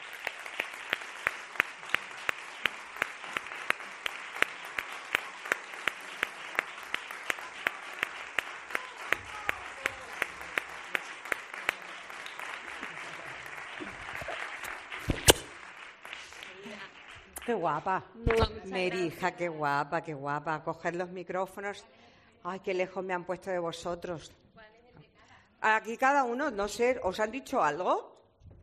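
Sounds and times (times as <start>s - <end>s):
audience applause: 0.0s - 17.4s
speech: 17.5s - 24.4s, 25.6s - 28.0s.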